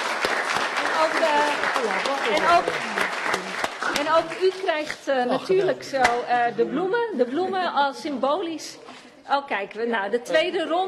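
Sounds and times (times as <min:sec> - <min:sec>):
audience applause: 0:00.0 - 0:04.7
speech: 0:01.3 - 0:10.8.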